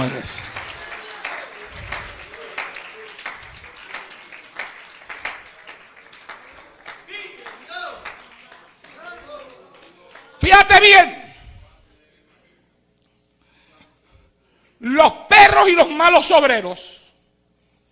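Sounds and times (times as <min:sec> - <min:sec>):
speech: 0:00.0 - 0:00.6, 0:10.8 - 0:11.2, 0:15.7 - 0:17.0
church congregation applause during a sermon: 0:00.0 - 0:11.1.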